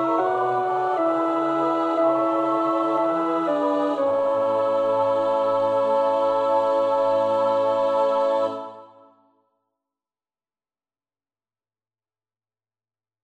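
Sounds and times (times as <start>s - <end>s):
tenor singing choir part: 0.0s - 9.2s.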